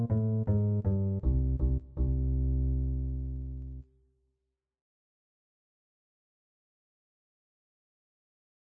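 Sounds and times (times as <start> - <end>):
bass guitar: 0.0 - 3.8.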